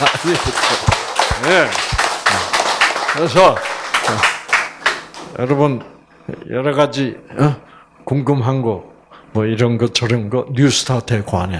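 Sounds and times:
audience clapping: 0.0s - 5.6s
speech: 0.2s - 2.0s, 3.1s - 4.4s, 5.4s - 11.5s.

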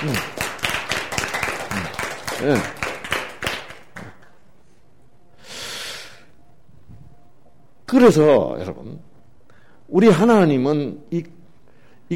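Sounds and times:
audience clapping: 0.0s - 4.4s
speech: 2.4s - 2.8s, 7.9s - 9.1s, 9.9s - 11.4s.

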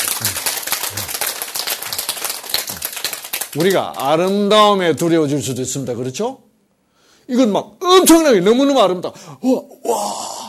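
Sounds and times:
audience applause: 0.0s - 4.1s
speech: 3.6s - 6.4s, 7.3s - 10.3s.

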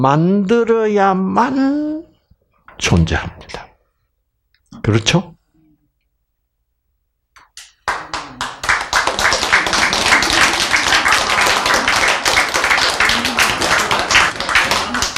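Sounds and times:
speech: 0.0s - 1.9s, 2.8s - 3.7s, 4.8s - 5.4s
crowd applause: 7.9s - 15.1s.

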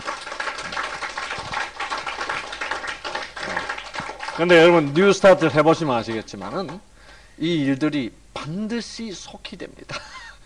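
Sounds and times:
audience clapping: 0.0s - 7.2s
speech: 4.4s - 10.1s.

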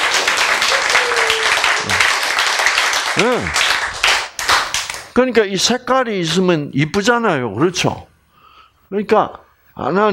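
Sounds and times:
crowd applause: 0.0s - 5.1s
speech: 3.2s - 3.6s, 5.2s - 8.1s, 8.9s - 10.1s.

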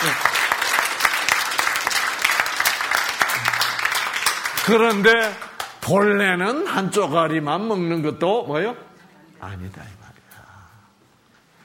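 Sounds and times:
audience applause: 0.0s - 5.8s
speech: 4.7s - 10.0s.

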